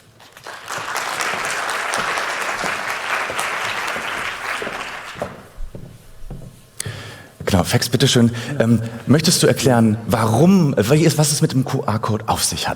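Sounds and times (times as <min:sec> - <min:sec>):
audience applause: 0:00.0 - 0:05.6
speech: 0:07.6 - 0:12.7.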